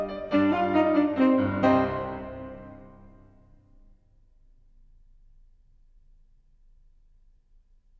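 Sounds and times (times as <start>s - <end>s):
tenor saxophone: 0.0s - 3.4s.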